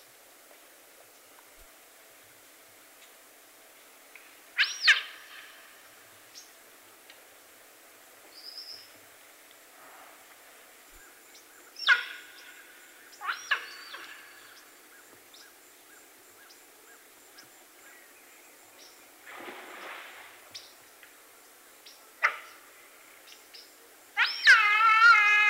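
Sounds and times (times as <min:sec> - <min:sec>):
giant otter in the South American rainforest: 0:13.2 - 0:14.4, 0:24.2 - 0:25.4.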